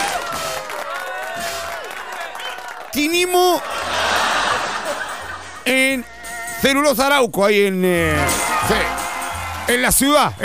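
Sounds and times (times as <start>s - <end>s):
audience applause: 0.0s - 5.6s, 8.2s - 10.4s
audience cheering and shouting: 0.0s - 7.2s, 8.0s - 10.4s
speech: 3.0s - 4.0s, 5.7s - 9.0s, 9.7s - 10.4s
laughter: 3.4s - 6.2s.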